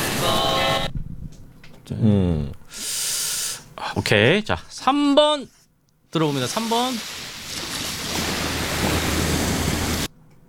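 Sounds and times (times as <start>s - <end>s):
speech: 1.9s - 2.8s, 4.0s - 7.2s
ocean waves crashing: 6.6s - 10.1s.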